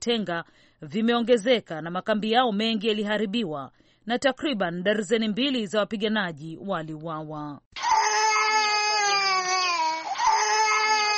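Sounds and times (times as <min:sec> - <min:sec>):
speech: 0:00.0 - 0:07.8
baby crying inside the Obili Catholic church in Yaoundé: 0:07.8 - 0:11.1.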